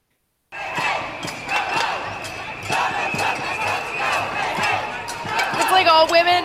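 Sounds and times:
protest crowd shouting: 0.5 - 6.4.

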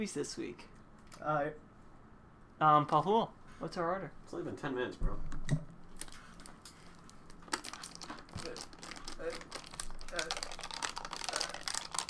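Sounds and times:
speech: 0.0 - 1.7, 2.6 - 5.6
chewing on a full plastic water bottle: 7.5 - 12.0.

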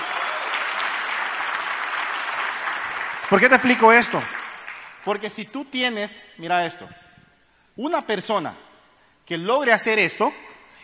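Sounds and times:
audience applause: 0.0 - 5.0
speech: 3.3 - 4.4, 5.0 - 7.0, 7.8 - 8.6, 9.3 - 10.4.

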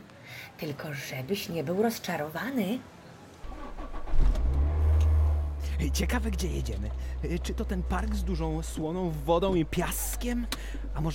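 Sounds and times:
speech: 0.4 - 3.0, 5.8 - 11.1
car engine starting: 3.4 - 11.0.

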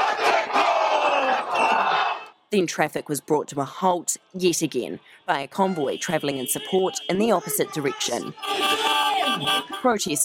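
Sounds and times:
group of protesters chanting and shouting an impromptu haka: 0.0 - 2.4, 5.0 - 9.8
speech: 2.5 - 10.2.

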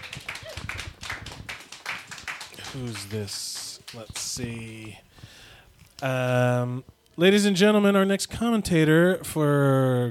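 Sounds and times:
audience applause and clapping: 0.0 - 4.9
speech: 2.7 - 5.3, 6.0 - 10.0.

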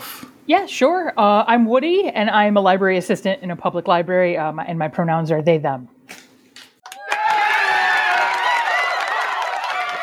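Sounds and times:
speech: 0.5 - 6.0
cheering-crowd sound effect played from a phone: 6.8 - 10.0.

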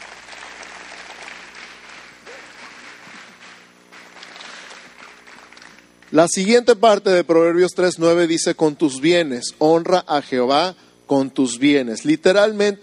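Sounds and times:
audience applauding loudly: 0.0 - 6.1
speech: 6.1 - 12.8.

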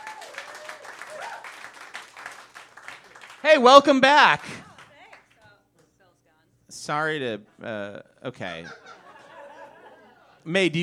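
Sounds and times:
audience applauding two guests: 0.0 - 5.4
speech: 3.4 - 4.6, 6.9 - 8.9, 10.4 - 10.8
laughter: 7.5 - 10.8.

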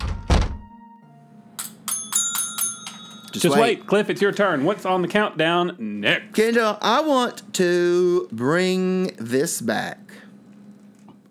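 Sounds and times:
thud of someone tripping over something: 0.0 - 0.6
speech: 3.3 - 10.2.

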